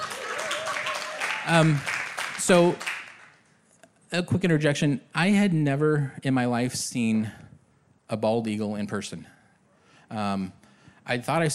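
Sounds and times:
audience applause: 0:00.0 - 0:03.4
speech: 0:01.5 - 0:02.9, 0:04.1 - 0:07.5, 0:08.1 - 0:09.4, 0:10.1 - 0:11.5.

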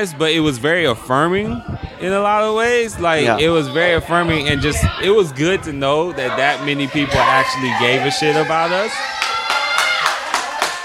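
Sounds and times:
speech: 0:00.0 - 0:09.4
audience applauding award winners: 0:08.9 - 0:10.8.

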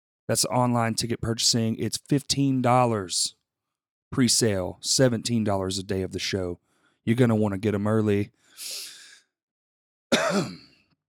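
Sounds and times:
speech: 0:00.3 - 0:03.4, 0:04.1 - 0:08.9, 0:10.3 - 0:10.6
person coughing: 0:10.1 - 0:10.8.

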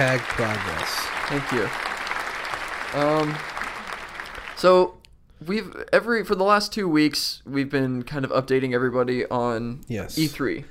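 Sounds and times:
speech: 0:00.0 - 0:01.9, 0:02.9 - 0:03.5, 0:04.6 - 0:10.6
applause: 0:00.0 - 0:04.9.

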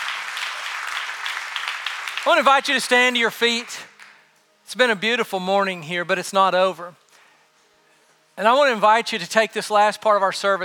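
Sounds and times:
audience applause: 0:00.0 - 0:04.2
speech: 0:02.2 - 0:03.9, 0:04.7 - 0:07.0, 0:08.4 - 0:10.6.

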